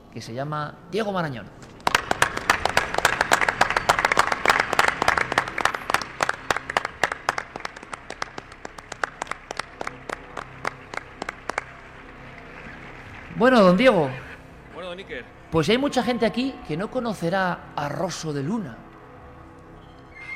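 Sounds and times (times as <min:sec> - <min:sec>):
speech: 0:00.2 - 0:01.7, 0:13.4 - 0:14.2, 0:15.1 - 0:18.8
audience applause: 0:01.8 - 0:14.4.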